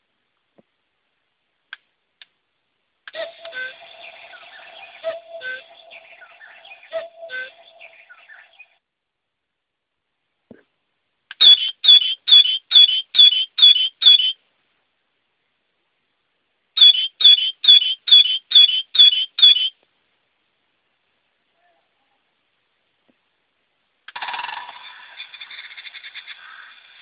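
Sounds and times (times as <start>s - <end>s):
English bird: 3.1s - 8.8s, 11.3s - 14.4s, 16.8s - 19.8s, 24.1s - 27.0s.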